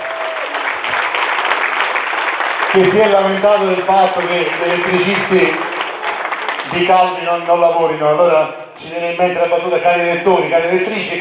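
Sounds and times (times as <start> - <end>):
audience applause for a town mayor at a public event: 0.0 - 7.6
speech: 2.8 - 5.7, 6.7 - 11.1.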